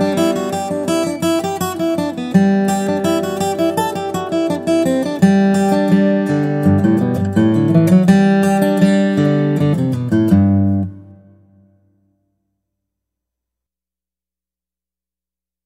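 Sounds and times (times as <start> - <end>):
guitar: 0.0 - 12.3.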